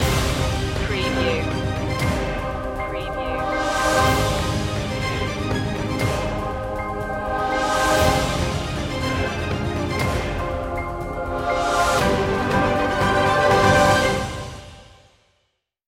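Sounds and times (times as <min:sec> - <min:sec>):
countdown: 0:00.0 - 0:14.6.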